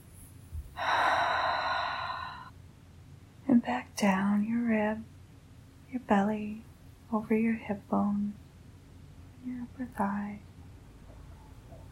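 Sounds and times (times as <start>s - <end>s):
deep inhalation during a guided body-awareness exercise: 0.8s - 2.5s
speech: 3.6s - 5.1s, 5.9s - 8.4s, 9.4s - 10.5s.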